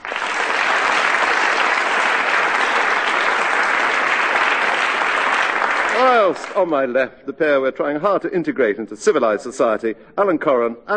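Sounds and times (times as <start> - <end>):
studio audience applause at a comedy panel quiz: 0.0 - 6.7
speech: 6.3 - 10.9.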